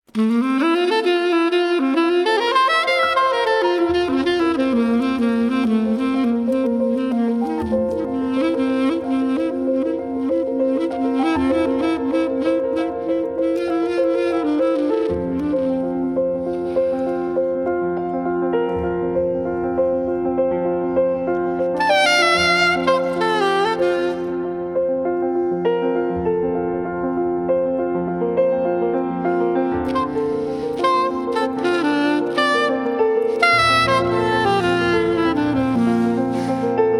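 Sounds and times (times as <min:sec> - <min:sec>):
improvisation: 0:00.1 - 0:36.9.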